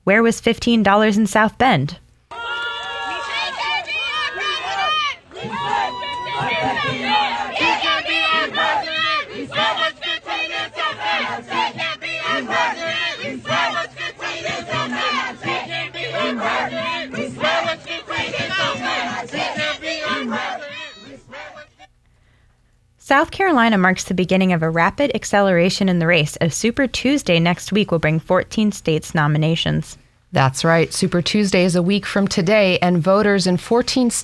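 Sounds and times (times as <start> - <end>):
speech: 0.0 - 2.0, 23.1 - 34.2
crowd chanting: 2.3 - 21.9
protesters shouting and heckling at march: 2.3 - 21.9.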